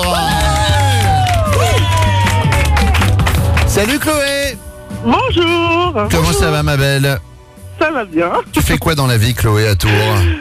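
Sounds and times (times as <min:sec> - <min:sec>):
applause: 0:00.0 - 0:04.4
speech: 0:05.0 - 0:10.3.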